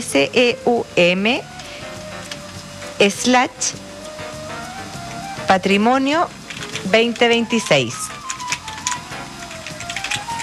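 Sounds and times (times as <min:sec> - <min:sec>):
speech: 0:00.0 - 0:01.5, 0:03.0 - 0:03.9, 0:05.5 - 0:08.0
typing on a keyboard: 0:06.5 - 0:10.4.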